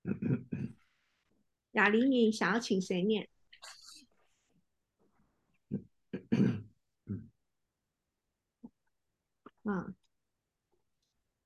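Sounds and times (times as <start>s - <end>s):
faint throat clearing during an online group practice session: 0.0s - 0.8s, 5.7s - 7.3s
speech: 1.8s - 3.8s.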